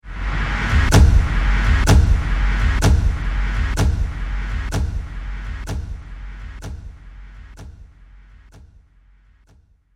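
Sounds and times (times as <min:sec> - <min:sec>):
movie trailer drum impact: 0:00.7 - 0:08.8.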